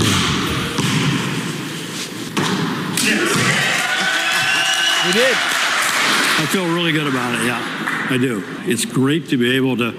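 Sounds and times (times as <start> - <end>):
basketball free throw thuds: 0.0 - 1.4
noisy background: 0.0 - 9.9
speech: 5.1 - 5.6, 6.4 - 9.9.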